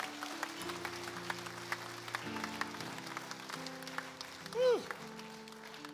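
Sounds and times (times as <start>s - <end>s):
audience clapping in a steady rhythm: 0.0s - 5.9s
rising-and-falling vocal whoop: 4.5s - 5.0s.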